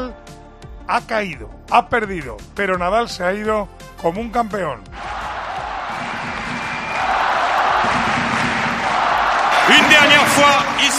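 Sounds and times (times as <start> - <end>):
speech: 0.9 - 5.0, 9.7 - 10.8
standing ovation and applause in a tennis stadium: 5.0 - 10.9.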